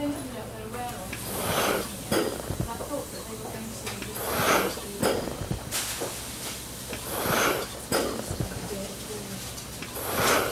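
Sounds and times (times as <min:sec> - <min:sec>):
ventilator in hospital intensive care unit during busy period: 0:00.0 - 0:10.5.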